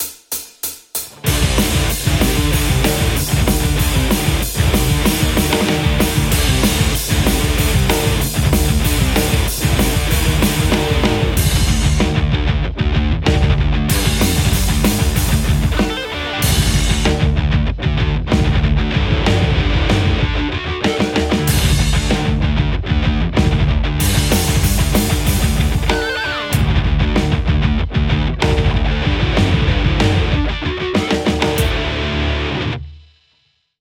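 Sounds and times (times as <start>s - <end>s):
Les Paul electric guitar: 1.2s - 32.9s.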